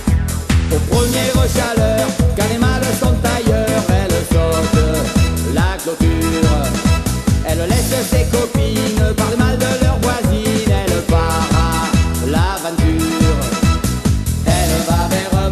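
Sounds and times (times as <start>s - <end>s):
background chanson song: 0.0s - 15.5s.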